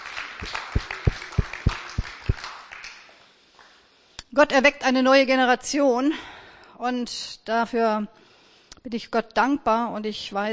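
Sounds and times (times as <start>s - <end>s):
sharp evenly spaced claps: 0.0s - 3.8s
speech: 0.4s - 0.7s, 4.4s - 8.2s, 8.8s - 10.5s.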